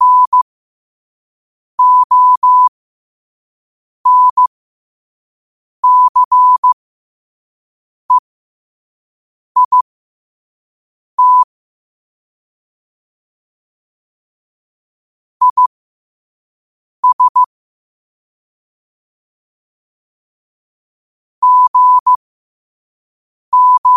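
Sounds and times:
morse code at 5 wpm: 0.0 - 0.4, 1.8 - 2.7, 4.1 - 4.5, 5.8 - 6.8, 9.6 - 9.8, 11.2 - 11.5, 15.4 - 15.7, 17.0 - 17.5, 21.4 - 22.2, 23.5 - 23.9.

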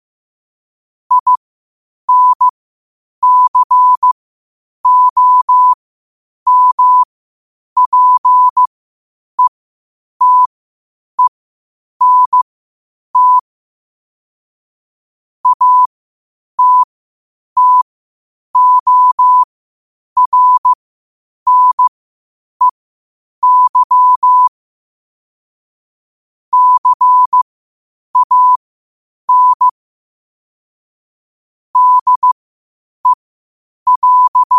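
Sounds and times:
morse code at 5 wpm: 1.1 - 1.4, 2.1 - 2.5, 3.2 - 4.2, 4.8 - 5.8, 6.5 - 7.1, 7.8 - 8.7, 10.2 - 10.5, 12.0 - 12.4, 13.2 - 13.4, 15.4 - 15.9, 16.6 - 16.9, 17.6 - 17.8, 18.6 - 19.5, 20.2 - 20.8, 21.5 - 21.9, 23.4 - 24.5, 26.5 - 27.4, 28.2 - 28.6, 29.3 - 29.7, 31.8 - 32.4, 33.9 - 34.5.

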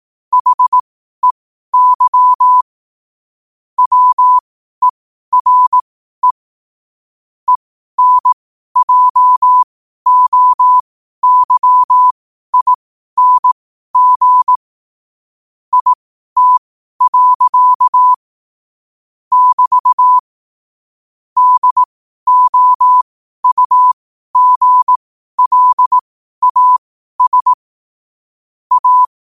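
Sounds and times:
morse code at 5 wpm: 0.3 - 2.6, 3.8 - 4.4, 5.3 - 6.4, 7.5 - 14.6, 15.7 - 18.2, 19.3 - 20.2, 21.4 - 27.6, 28.7 - 29.1.

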